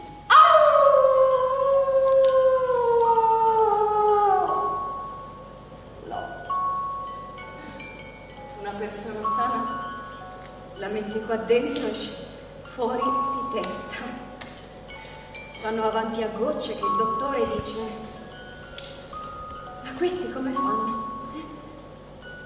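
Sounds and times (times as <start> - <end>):
long wavering howl: 0.3 - 6.5
speech: 11.2 - 12.2, 12.8 - 14.2, 15.6 - 18.1, 20.0 - 20.9.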